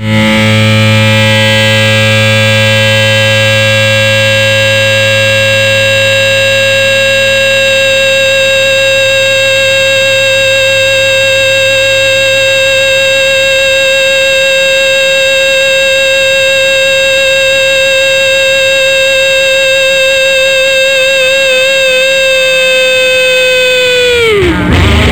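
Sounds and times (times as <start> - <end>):
loud distorted emergency broadcast test tone: 0.0 - 25.1.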